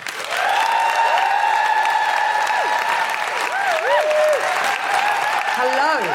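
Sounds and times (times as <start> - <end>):
audience applause at a live feminist comedy show: 0.0 - 6.1.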